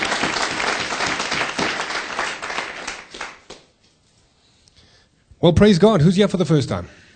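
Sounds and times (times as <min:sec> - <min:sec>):
church congregation applauding after worship: 0:00.0 - 0:03.8
speech: 0:05.4 - 0:07.1.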